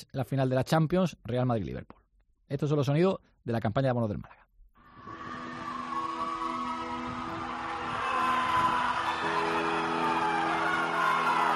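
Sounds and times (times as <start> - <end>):
speech: 0.0 - 4.4
people reveling at home watching football: 5.0 - 11.5
people whistling at home watching football: 5.0 - 11.5.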